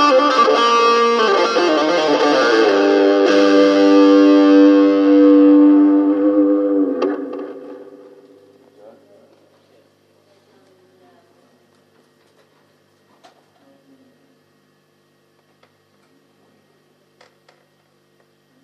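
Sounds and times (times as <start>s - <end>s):
guitar: 0.0s - 8.8s.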